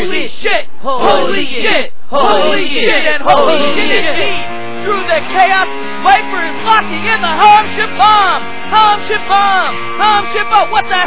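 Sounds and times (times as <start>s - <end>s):
wrestling crowd chanting: 0.0s - 11.0s
speech: 0.5s - 11.0s.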